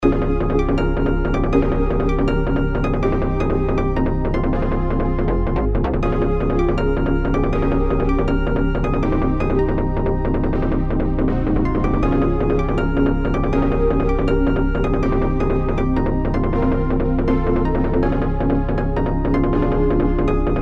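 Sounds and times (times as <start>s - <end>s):
bass: 0.0s - 20.6s.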